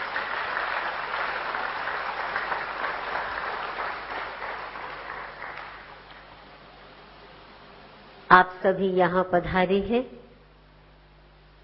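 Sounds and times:
audience applauding loudly: 0.0 - 6.6
speech: 8.3 - 10.2.

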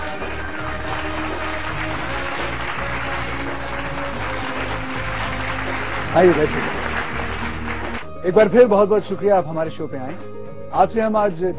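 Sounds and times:
audience applause welcoming a guest: 0.0 - 8.1
speech: 6.1 - 6.8, 8.2 - 11.5.

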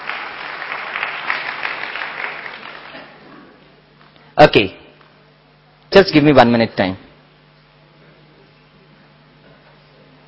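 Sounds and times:
audience applause: 0.0 - 3.6
speech: 4.4 - 4.8, 5.9 - 7.0.

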